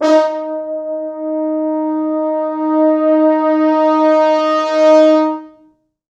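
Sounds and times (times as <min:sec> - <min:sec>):
four French horns: 0:00.0 - 0:05.8.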